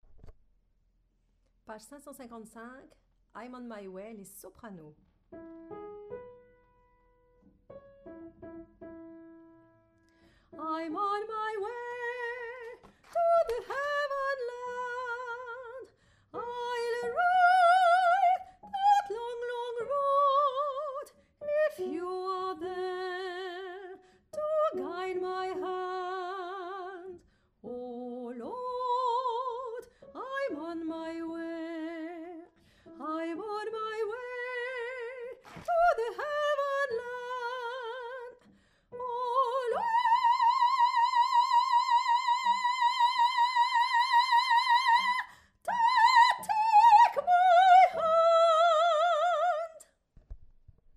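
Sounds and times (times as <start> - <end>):
soprano singing: 10.5 - 49.8.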